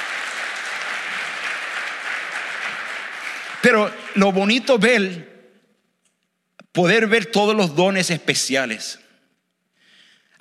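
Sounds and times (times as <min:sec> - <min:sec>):
crowd clapping: 0:00.0 - 0:05.2
speech: 0:03.6 - 0:05.3, 0:06.8 - 0:09.0.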